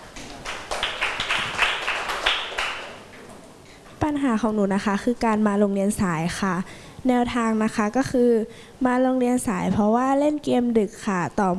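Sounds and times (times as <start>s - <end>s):
classroom clapping for a classmate: 0.1s - 3.2s
speech: 4.1s - 11.5s.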